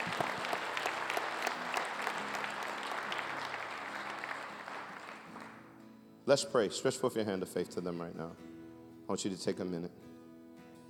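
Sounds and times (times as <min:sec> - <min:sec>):
audience hand clapping: 0:00.0 - 0:05.7
speech: 0:06.3 - 0:08.5, 0:09.1 - 0:10.0.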